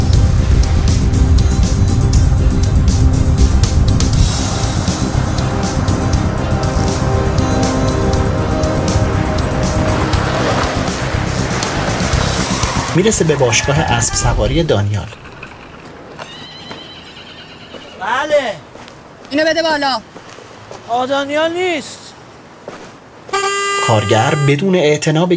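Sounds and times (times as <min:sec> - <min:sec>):
car driven fast engine roaring: 0:00.0 - 0:16.1
road and wind noise: 0:00.0 - 0:25.0
speech: 0:13.0 - 0:15.2, 0:19.3 - 0:20.2, 0:20.9 - 0:22.0, 0:23.9 - 0:25.3.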